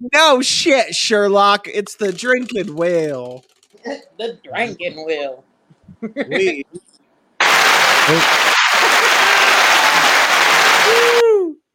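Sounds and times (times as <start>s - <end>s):
speech: 0.0s - 6.9s, 8.0s - 9.0s
applause sound effect: 7.4s - 11.2s.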